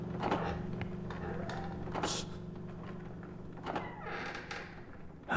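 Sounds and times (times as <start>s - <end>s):
wooden floorboards creaking: 0.2s - 5.3s.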